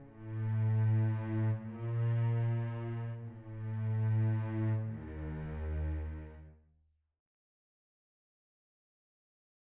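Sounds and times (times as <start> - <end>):
cellos playing: 0.0 - 6.5.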